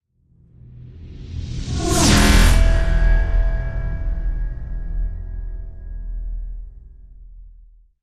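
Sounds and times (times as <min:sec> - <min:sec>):
swoosh and forged steel hit: 0:00.9 - 0:07.2.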